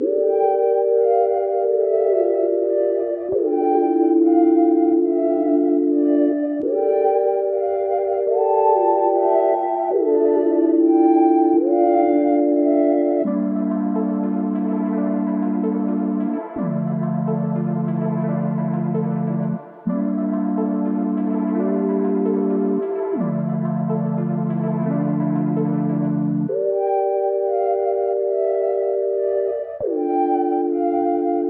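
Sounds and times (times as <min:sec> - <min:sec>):
melodies in D minor at 145 BPM: 0:00.0 - 0:31.4.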